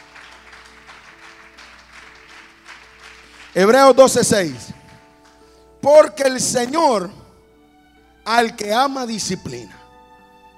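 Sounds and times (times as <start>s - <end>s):
church congregation applauding during a sermon: 0.0s - 5.5s
speech: 3.6s - 4.8s, 5.8s - 7.2s, 8.3s - 9.8s.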